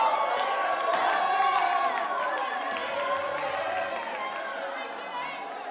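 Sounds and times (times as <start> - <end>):
tambourine in blues soul style: 0.2 - 5.5.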